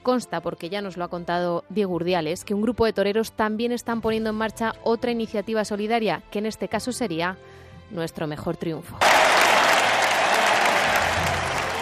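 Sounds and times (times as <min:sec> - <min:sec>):
speech: 0:00.0 - 0:09.7
large crowd ovation: 0:09.0 - 0:11.8.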